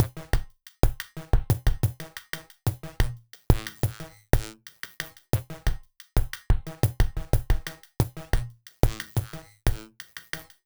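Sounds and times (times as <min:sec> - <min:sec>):
processed electro percussion: 0:00.0 - 0:10.5.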